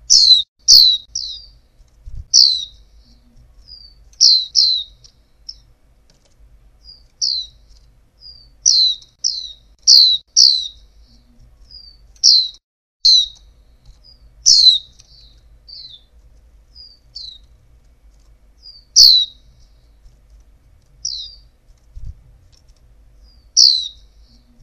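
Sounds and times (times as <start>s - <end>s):
female white-eye downward-slurred chirps: 0.0s - 1.6s, 2.3s - 5.7s, 6.8s - 16.1s, 16.7s - 17.6s, 18.6s - 20.0s, 21.0s - 21.6s, 23.2s - 24.6s.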